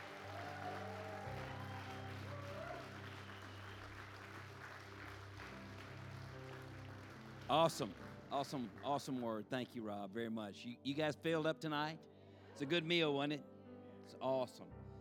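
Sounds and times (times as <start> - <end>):
audience applause: 0.0 - 9.4
speech: 7.5 - 13.5, 14.1 - 14.8.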